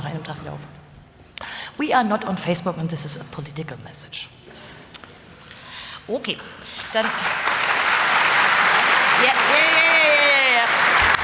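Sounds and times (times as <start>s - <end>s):
speech: 0.3s - 0.9s, 1.8s - 4.6s, 6.1s - 7.5s
moderate audience applause: 6.8s - 11.2s.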